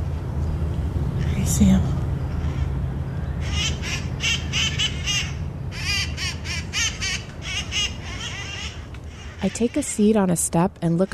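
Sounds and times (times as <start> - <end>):
steady low rumble of traffic: 0.0 - 11.1
speech: 1.5 - 2.0, 9.4 - 11.1
flock of green birds screeching in trees: 2.1 - 10.1.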